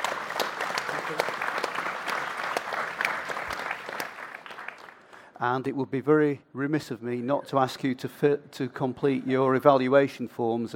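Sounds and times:
audience applause: 0:00.0 - 0:05.2
speech: 0:05.4 - 0:10.7.

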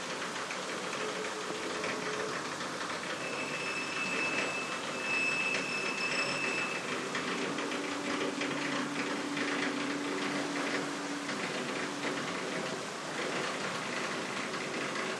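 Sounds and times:
lock gate opening: 0:00.2 - 0:15.0.

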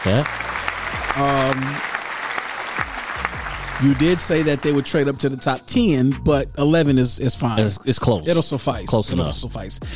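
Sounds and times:
speech: 0:00.0 - 0:00.4, 0:01.2 - 0:01.9, 0:03.8 - 0:09.9
round of applause: 0:00.0 - 0:05.2.

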